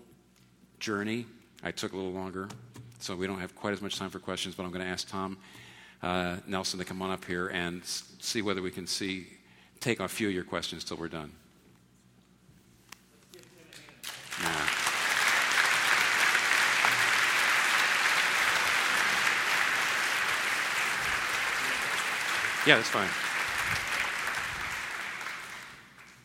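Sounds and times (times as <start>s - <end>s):
speech: 0.8s - 11.4s, 22.7s - 23.2s
audience applause: 14.0s - 26.2s.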